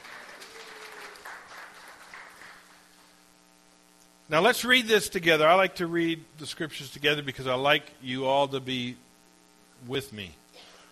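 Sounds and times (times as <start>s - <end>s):
audience applause: 0.0s - 3.1s
speech: 4.3s - 9.0s, 9.8s - 10.7s.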